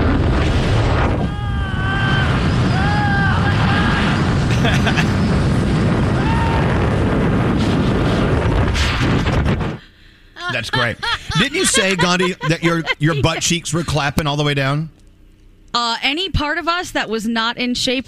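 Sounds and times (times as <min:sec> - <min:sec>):
skydiver jumping out of a plane: 0:00.0 - 0:09.8
laughter: 0:04.5 - 0:05.2, 0:10.4 - 0:14.6
speech: 0:10.7 - 0:15.0, 0:15.7 - 0:18.0.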